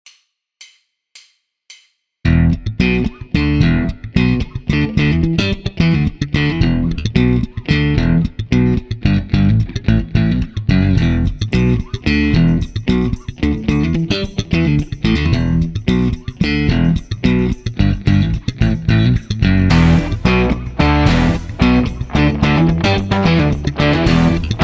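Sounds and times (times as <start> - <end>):
music without drums: 0.0 - 24.6.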